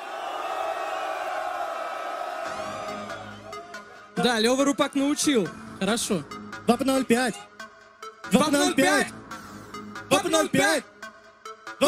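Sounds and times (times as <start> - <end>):
battle rap audience in St. Petersburg roaring and cheering: 0.0 - 3.8
speech: 4.2 - 7.5, 8.3 - 9.2, 10.2 - 10.9.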